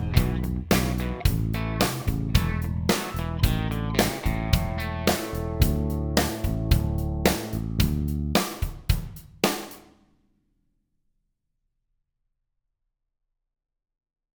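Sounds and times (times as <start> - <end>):
intermediate honky-tonk backing track: 0.0 - 9.6.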